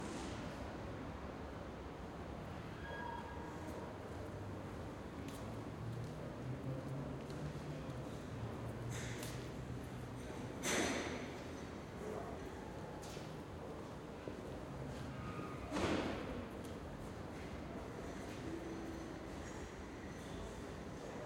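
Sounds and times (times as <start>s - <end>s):
U-Bahn train stopping and moving on at Kottbusser Tor platform in Berlin: 0.0s - 21.2s.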